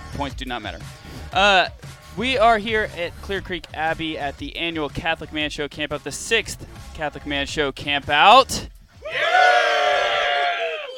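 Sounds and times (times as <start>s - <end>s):
speech: 0.2s - 9.6s
crowd yell sound effect track: 9.0s - 10.9s.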